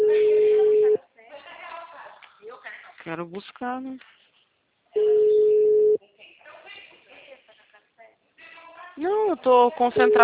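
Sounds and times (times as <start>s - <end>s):
telephone tone while placing a call: 0.0s - 1.0s, 5.0s - 6.0s, 10.0s - 10.2s
speech: 3.1s - 4.2s, 9.0s - 10.2s.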